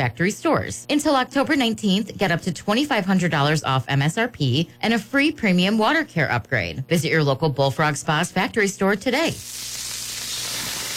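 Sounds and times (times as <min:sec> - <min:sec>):
speech: 0:00.0 - 0:09.9
smash burgers sizzling at JC's North: 0:09.2 - 0:10.9.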